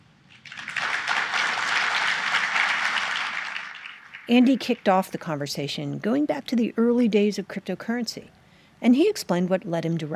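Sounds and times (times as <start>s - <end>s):
audience applause welcoming panel speakers at a live stage talk on cryptocurrency: 0.4s - 5.0s
speech: 4.3s - 10.1s.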